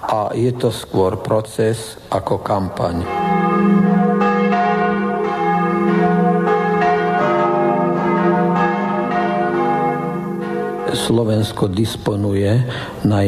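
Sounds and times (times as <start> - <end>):
speech: 0.1 - 3.8, 11.0 - 13.2
church bells ringing: 2.4 - 12.8.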